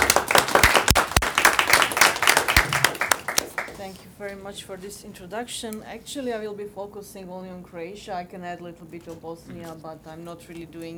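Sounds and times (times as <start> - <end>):
audience round of applause: 0.0 - 3.9
speech: 4.2 - 10.9.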